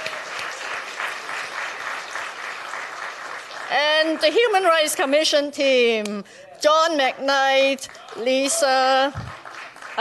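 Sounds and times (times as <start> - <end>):
audience applause: 0.0 - 4.8, 7.8 - 10.0
speech: 3.7 - 9.2.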